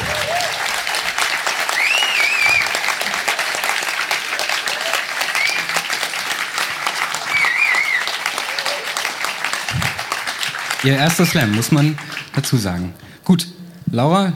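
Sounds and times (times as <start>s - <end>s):
cheers and whistles: 0.0s - 6.1s, 7.2s - 9.8s
audience applause: 0.0s - 12.9s
speech: 10.8s - 14.3s.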